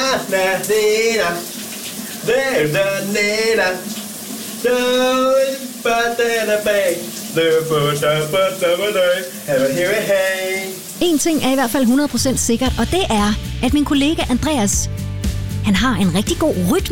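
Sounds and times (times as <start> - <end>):
man singing in a running shower: 0.0 - 1.5, 2.2 - 4.0, 4.6 - 10.8
running shower spraying water: 0.0 - 15.4
speech: 0.1 - 1.6, 2.2 - 3.9, 4.6 - 15.0, 15.6 - 16.9.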